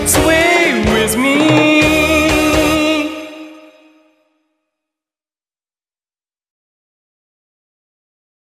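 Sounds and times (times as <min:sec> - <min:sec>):
English-language song: 0:00.0 - 0:04.4.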